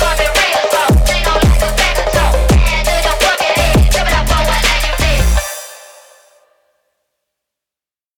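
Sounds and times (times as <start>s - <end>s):
phonk music: 0.0s - 6.5s.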